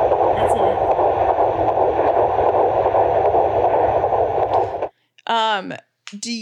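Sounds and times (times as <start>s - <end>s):
constant hiss: 0.0s - 4.9s
rapid heartbeat on a monitor around 150 beats per minute: 0.0s - 4.9s.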